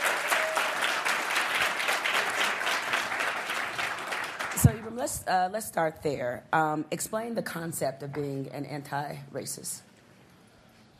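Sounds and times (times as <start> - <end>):
audience applause welcoming an author guest: 0.0 - 4.7
speech: 5.0 - 9.9.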